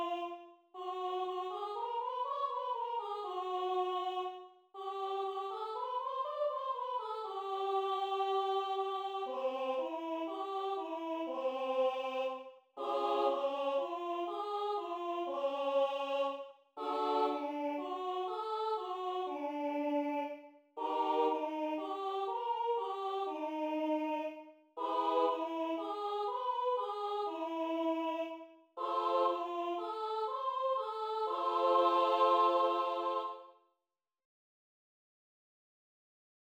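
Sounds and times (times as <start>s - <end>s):
choir warming up: 0.0s - 33.5s.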